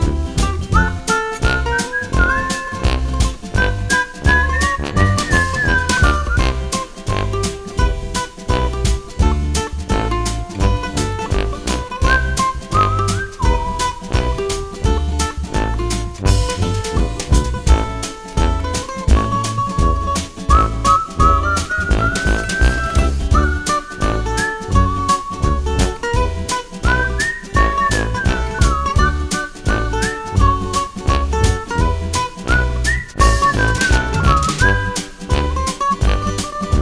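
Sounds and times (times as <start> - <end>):
person whistling: 0.0 - 6.9, 12.0 - 15.4, 19.2 - 35.6
guitar picking: 0.0 - 36.8.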